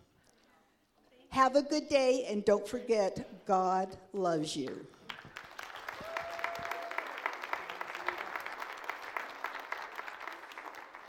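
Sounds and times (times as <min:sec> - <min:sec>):
speech: 0:01.4 - 0:05.0
group applauding: 0:04.9 - 0:11.0.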